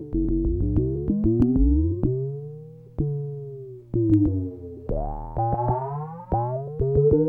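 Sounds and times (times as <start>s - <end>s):
weird trance synth sequence: 0.1s - 2.0s, 4.9s - 7.2s.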